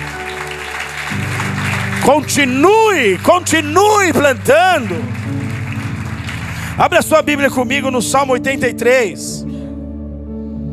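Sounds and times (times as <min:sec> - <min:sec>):
applause: 0:00.0 - 0:08.4
speech: 0:02.0 - 0:05.2, 0:06.8 - 0:09.6.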